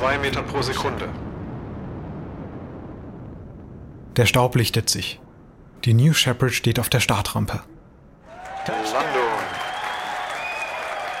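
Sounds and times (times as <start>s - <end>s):
speech: 0.0s - 1.3s, 4.2s - 5.2s, 5.8s - 7.7s, 8.6s - 9.2s
cheering and applause in a control room: 8.2s - 11.1s.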